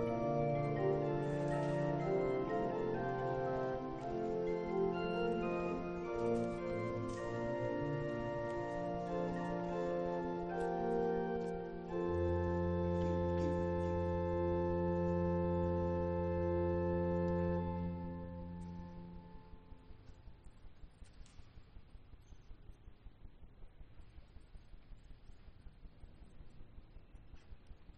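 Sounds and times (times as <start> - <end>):
prelude in F major: 0.0 - 19.8.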